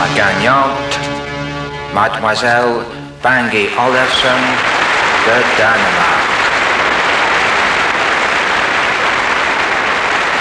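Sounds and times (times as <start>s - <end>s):
speech: 0.2s - 1.0s, 1.9s - 6.2s
audience applause for a contest winner: 3.6s - 10.4s.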